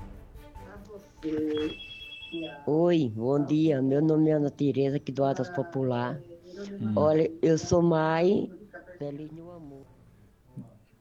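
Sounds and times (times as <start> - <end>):
speech: 1.0 - 10.0
telephone ringing as a dropped call is redialled: 1.2 - 2.8
faint high tone: 1.2 - 2.9.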